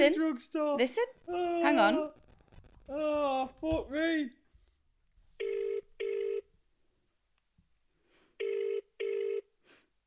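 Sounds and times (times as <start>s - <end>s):
speech: 0.0s - 2.2s, 2.9s - 4.4s
ringback tone of an outgoing phone call: 5.4s - 6.4s, 8.4s - 9.5s.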